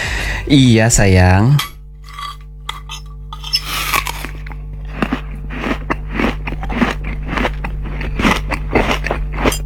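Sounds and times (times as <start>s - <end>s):
steady low hum: 0.0s - 9.6s
speech: 0.4s - 1.7s
person chewing and eating food: 2.0s - 9.6s.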